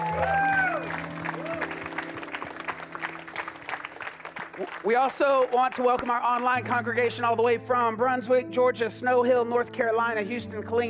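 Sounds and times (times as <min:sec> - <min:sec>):
audience hand clapping: 0:00.0 - 0:07.0
speech: 0:04.6 - 0:10.8.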